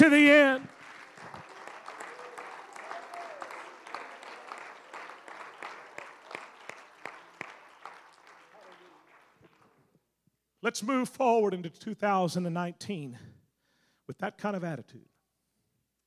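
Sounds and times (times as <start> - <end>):
speech: 0.0 - 0.7, 10.7 - 13.4, 14.1 - 15.1
audience hand clap of praise: 0.0 - 9.9.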